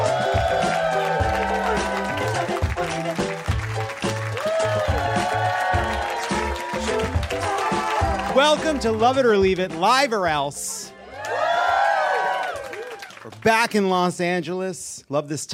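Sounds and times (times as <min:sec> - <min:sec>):
studio audience applause: 0:00.0 - 0:08.8, 0:11.1 - 0:13.6
loud music: 0:00.0 - 0:11.4
speech: 0:08.4 - 0:10.7, 0:13.2 - 0:15.5.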